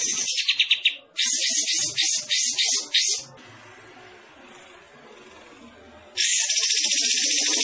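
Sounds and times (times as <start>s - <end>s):
bulbul song twittering: 0.2s - 3.3s, 6.2s - 7.5s.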